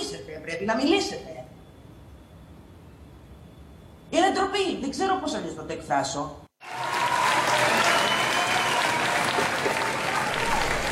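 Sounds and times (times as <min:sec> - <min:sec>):
speech: 0:00.3 - 0:01.4, 0:04.1 - 0:06.4
audience applause: 0:06.6 - 0:10.9.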